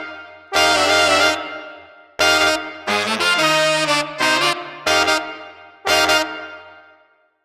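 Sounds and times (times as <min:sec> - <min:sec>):
funky street brass combo playing without drums: 0:00.5 - 0:01.5, 0:02.2 - 0:06.4.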